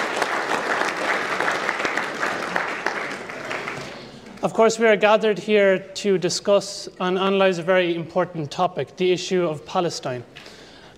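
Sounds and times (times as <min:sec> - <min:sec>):
crowd applauding: 0:00.0 - 0:04.4
speech: 0:04.4 - 0:10.4.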